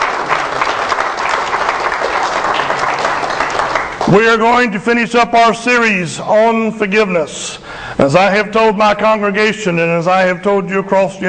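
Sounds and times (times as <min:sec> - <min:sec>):
crowd applauding: 0:00.0 - 0:04.2
speech: 0:04.1 - 0:11.2.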